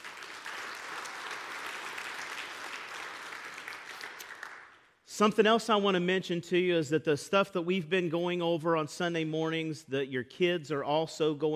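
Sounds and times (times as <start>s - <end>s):
audience applause: 0.0s - 4.8s
speech: 5.2s - 11.5s.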